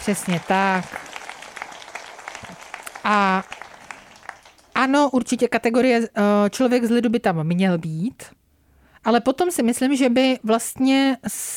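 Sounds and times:
speech: 0:00.0 - 0:01.1, 0:03.1 - 0:03.6, 0:04.8 - 0:08.4, 0:09.0 - 0:11.5
applause: 0:00.0 - 0:05.2.

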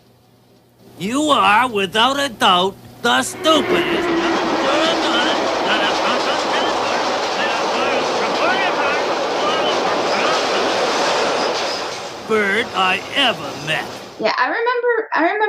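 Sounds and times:
speech: 0:01.0 - 0:04.2, 0:12.3 - 0:15.4
indistinct voices: 0:03.1 - 0:11.6, 0:12.2 - 0:14.0
subway train roaring past: 0:03.1 - 0:14.2
thin metallic squeals and rattling of subway train: 0:03.4 - 0:08.1, 0:11.1 - 0:12.2.

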